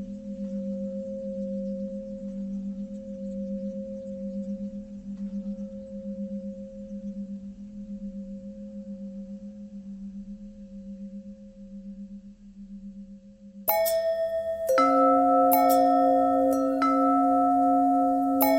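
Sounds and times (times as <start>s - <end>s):
long pentatonic bell melody: 13.7s - 18.5s.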